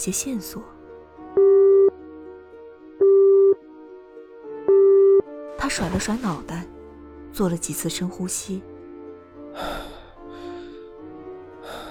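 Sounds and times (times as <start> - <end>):
speech: 0.0 - 0.8, 5.7 - 6.8, 7.4 - 8.7
telephone dialing tone while call connects: 1.4 - 2.0, 3.0 - 3.6, 4.7 - 5.3.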